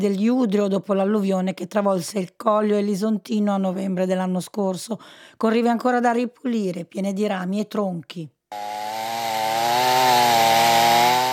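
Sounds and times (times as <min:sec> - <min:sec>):
speech: 0:00.0 - 0:08.9
chainsaw cutting wood: 0:08.5 - 0:11.3.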